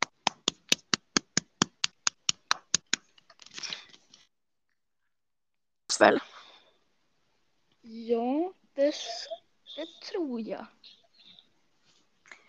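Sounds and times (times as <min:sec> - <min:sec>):
hand clapping: 0:00.0 - 0:03.0
speech: 0:06.0 - 0:06.3, 0:08.9 - 0:11.0.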